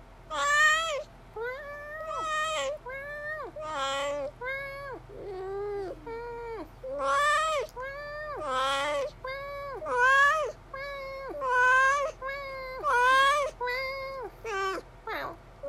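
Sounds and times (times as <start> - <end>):
faint low hum: 0.0 - 15.6
cat meowing: 0.3 - 15.6.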